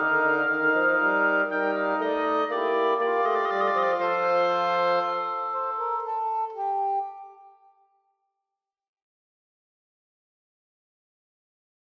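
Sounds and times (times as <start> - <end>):
quartet playing: 0.0 - 7.0.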